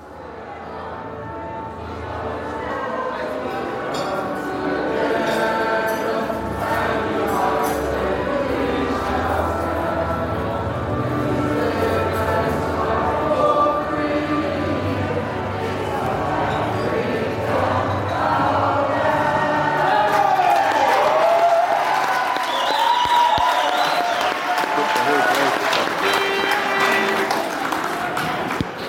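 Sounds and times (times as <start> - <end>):
packed pub crowd roaring and murmuring during a rugby final: 0.0 - 28.8
glasses clinking: 3.9 - 4.5
scattered clapping: 20.1 - 28.8.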